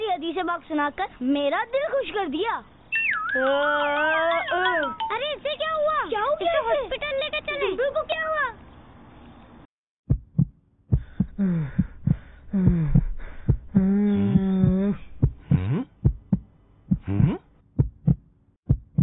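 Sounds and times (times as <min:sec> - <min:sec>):
speech: 0:00.3 - 0:08.6, 0:11.4 - 0:11.8, 0:12.5 - 0:13.0
heartbeat: 0:10.1 - 0:19.0.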